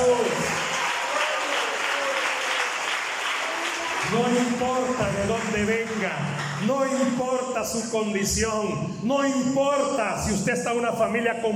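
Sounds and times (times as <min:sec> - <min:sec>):
audience applause: 0:00.0 - 0:07.0
speech: 0:04.1 - 0:11.5.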